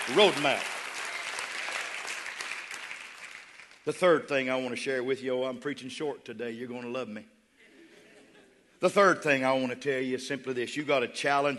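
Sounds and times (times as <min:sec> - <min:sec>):
audience clapping: 0:00.0 - 0:03.9
speech: 0:00.1 - 0:00.8, 0:03.9 - 0:07.4, 0:08.8 - 0:11.5.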